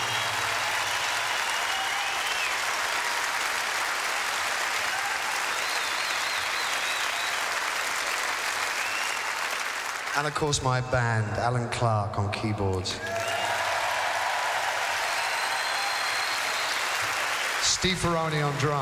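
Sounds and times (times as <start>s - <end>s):
audience applause for concert crew: 0.0s - 10.6s, 13.0s - 18.7s
speech: 10.2s - 13.3s, 17.8s - 18.7s.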